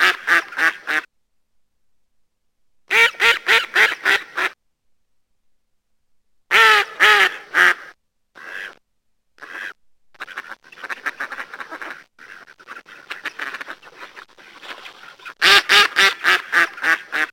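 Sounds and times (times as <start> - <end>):
mallard quacking: 0.0 - 1.1, 2.9 - 4.6, 6.5 - 8.8, 9.4 - 17.3.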